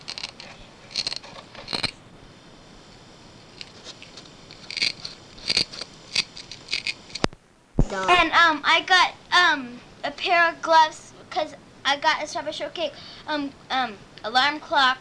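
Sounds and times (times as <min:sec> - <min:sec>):
Velcro ripping apart: 0:03.6 - 0:07.3
speech: 0:08.0 - 0:14.9.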